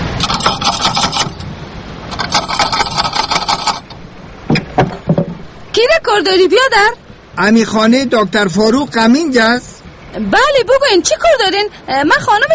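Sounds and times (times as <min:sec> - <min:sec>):
buzzing rattling mechanical sound: 0:00.1 - 0:05.5
knocking on a wooden door: 0:04.5 - 0:05.5
speech: 0:06.0 - 0:12.5.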